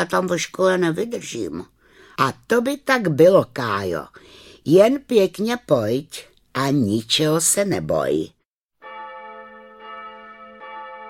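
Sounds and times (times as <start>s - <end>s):
speech: 0.0s - 8.4s
church bells ringing: 8.8s - 11.0s.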